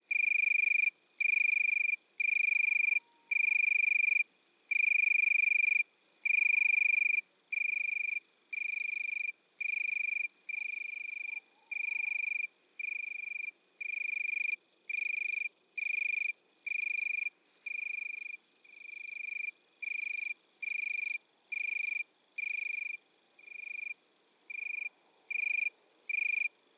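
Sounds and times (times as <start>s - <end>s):
Italian tree cricket trilling: 0.1s - 26.7s.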